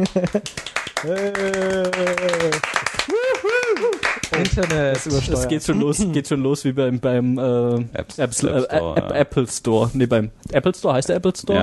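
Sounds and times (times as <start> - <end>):
clapping: 0.0 - 5.2
speech: 0.0 - 11.6.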